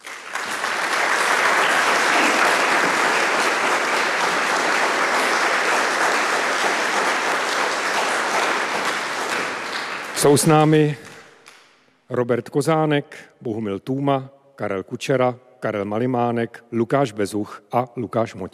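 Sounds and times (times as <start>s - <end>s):
audience applause welcoming the band: 0.0s - 11.2s
speech: 10.2s - 11.0s, 12.1s - 18.5s.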